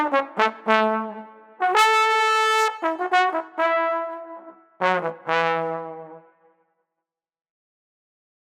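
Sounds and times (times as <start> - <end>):
jovial trombone: 0.0 - 6.2.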